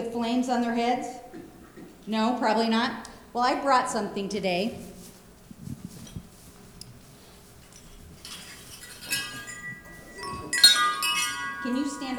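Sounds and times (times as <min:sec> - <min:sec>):
speech: 0:00.2 - 0:01.2, 0:02.1 - 0:04.9
wind chime ringing: 0:07.7 - 0:12.1.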